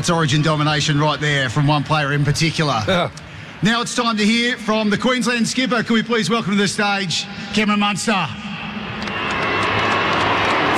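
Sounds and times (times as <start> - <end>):
speech: 0.0 - 8.4
large stadium crowd booing: 8.4 - 10.7.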